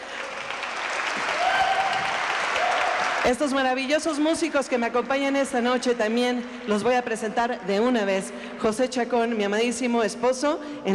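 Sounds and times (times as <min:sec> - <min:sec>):
audience applause: 0:00.0 - 0:03.3
speech: 0:03.2 - 0:10.9.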